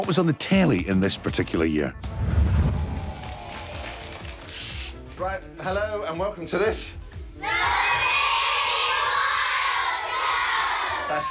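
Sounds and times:
speech: 0:00.0 - 0:02.4, 0:05.2 - 0:07.7, 0:11.1 - 0:11.2
children from Bristol shouting and cheering in a TV studio: 0:02.9 - 0:04.9, 0:07.3 - 0:11.2.

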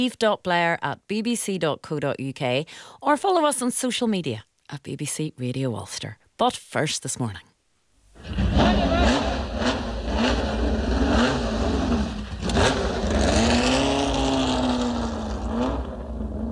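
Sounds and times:
speech: 0:00.0 - 0:07.5
motorsport car engine revving: 0:08.2 - 0:16.5.

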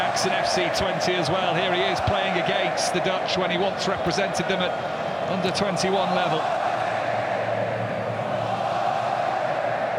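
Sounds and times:
speech: 0:00.0 - 0:06.6
Morocco football fans cheering in stadium: 0:00.0 - 0:09.9.

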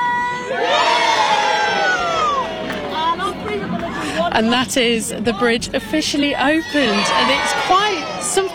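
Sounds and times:
crowd of schoolchildren cheering: 0:00.0 - 0:03.3, 0:06.6 - 0:08.5
speech: 0:04.4 - 0:08.5.

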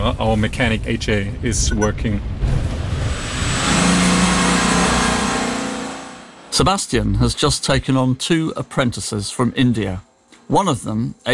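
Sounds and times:
speech: 0:00.0 - 0:02.3, 0:06.6 - 0:11.3
car engine driving through the village of Buchenbach: 0:01.8 - 0:06.7.

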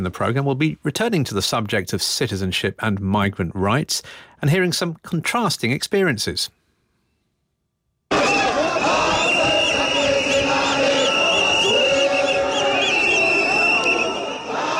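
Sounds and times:
speech: 0:00.0 - 0:06.6
thousands of marchers in South Africa's main city streets: 0:08.1 - 0:14.7.

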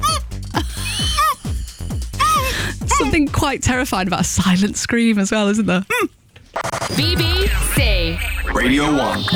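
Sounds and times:
person letting out high squeaky yelps of excitement: 0:00.0 - 0:01.5, 0:02.2 - 0:02.7
speech: 0:03.0 - 0:09.3.

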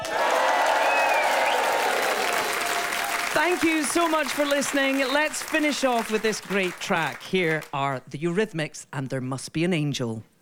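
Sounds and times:
studio audience cheering and clapping: 0:00.0 - 0:07.9
speech: 0:03.4 - 0:10.4.

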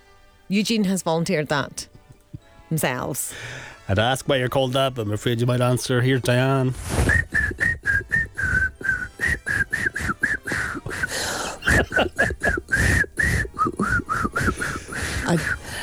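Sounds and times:
speech: 0:00.5 - 0:01.9, 0:02.7 - 0:07.1
laughter: 0:03.4 - 0:15.8
person whistling: 0:06.7 - 0:15.8.

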